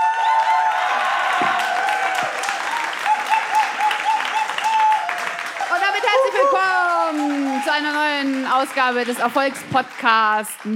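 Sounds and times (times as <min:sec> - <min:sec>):
thunderous applause from live audience: 0:00.0 - 0:10.7
speech: 0:07.8 - 0:10.7.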